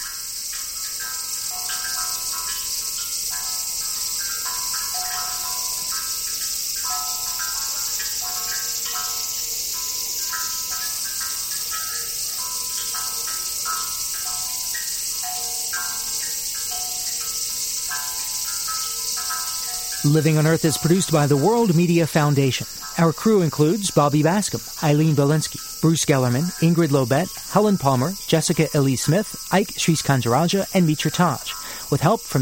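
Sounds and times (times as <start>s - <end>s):
cicadas droning: 0.0s - 32.3s
water dripping through bamboo tubes: 0.0s - 32.3s
speech: 20.1s - 32.3s.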